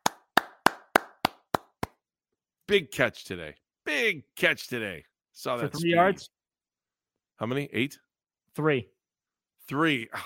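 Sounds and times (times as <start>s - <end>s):
crisp hand claps in a studio: 0.0s - 2.0s
speech: 2.7s - 6.4s, 7.4s - 8.0s, 8.6s - 9.0s, 9.7s - 10.2s.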